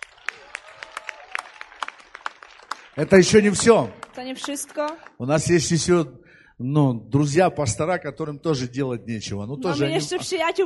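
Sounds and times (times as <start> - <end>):
scattered applause at a church prayer gathering: 0.0 - 5.2
speech: 3.0 - 10.6.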